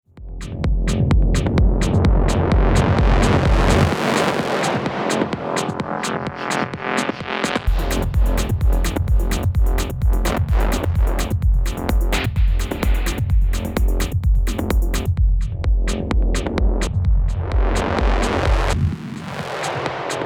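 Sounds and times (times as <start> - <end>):
Denon DJ X1850 pumping electronic beat: 0.1 - 20.2.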